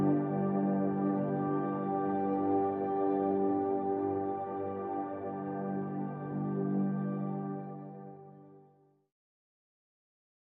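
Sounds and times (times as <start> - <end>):
synth pads in G: 0.0 - 8.3.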